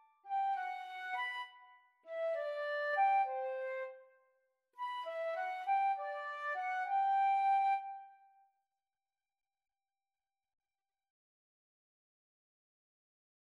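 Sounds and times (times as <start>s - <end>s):
pastorale flute duet: 0.3s - 4.0s, 4.8s - 8.2s.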